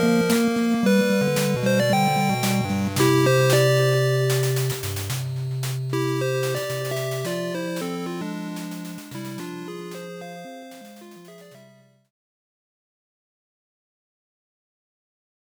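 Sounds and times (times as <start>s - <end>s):
8-bit ending music: 0.0s - 11.9s.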